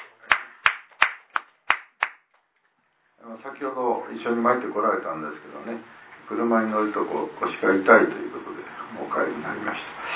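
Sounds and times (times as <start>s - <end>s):
clapping to honour a woman's 87th birthday at a gathering: 0.0s - 2.4s
speech: 3.4s - 8.4s, 9.2s - 10.0s.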